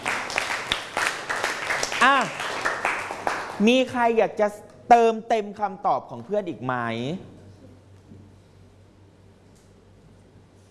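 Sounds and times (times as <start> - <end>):
classroom applause for a student: 0.0 - 3.6
speech: 2.0 - 2.4, 3.6 - 7.3.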